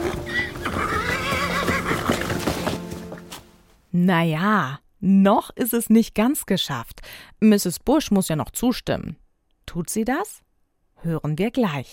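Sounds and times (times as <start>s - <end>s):
old worn-out horse neighing: 0.0s - 3.0s
speech: 4.0s - 10.4s, 11.0s - 11.9s.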